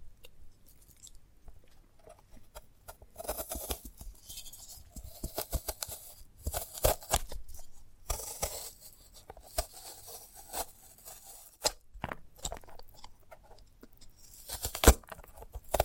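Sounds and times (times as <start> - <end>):
sprouted coconut handled with tearing, scraping and snipping: 2.1 - 15.8.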